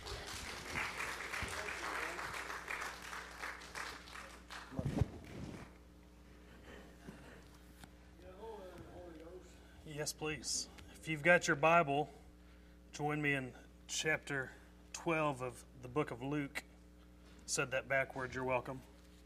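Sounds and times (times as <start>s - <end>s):
congregation applause welcoming the preacher: 0.0s - 4.8s
speech: 10.0s - 12.2s, 13.0s - 16.6s, 17.5s - 18.9s.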